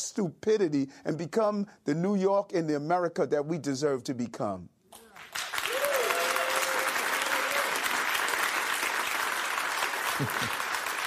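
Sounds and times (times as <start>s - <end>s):
speech: 0.1s - 4.8s, 10.2s - 10.6s
audience applause: 5.1s - 11.0s.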